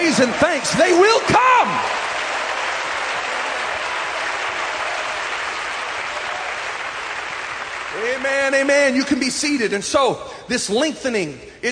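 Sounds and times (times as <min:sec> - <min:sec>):
audience clapping hands: 0:00.0 - 0:09.3
speech: 0:00.2 - 0:02.0, 0:07.9 - 0:11.7.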